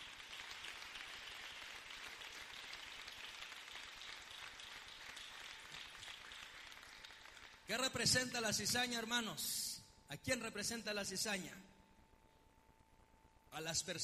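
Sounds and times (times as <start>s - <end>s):
audience applauding: 0.0s - 7.7s
speech: 7.7s - 11.8s, 13.6s - 14.0s.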